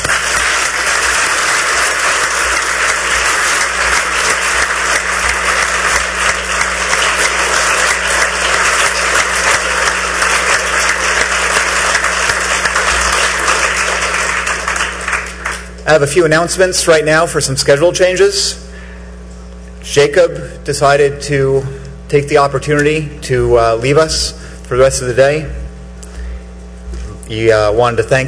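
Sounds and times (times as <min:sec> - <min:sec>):
audience applause: 0:00.0 - 0:15.8
speech: 0:15.9 - 0:18.6, 0:19.9 - 0:25.6, 0:27.3 - 0:28.2.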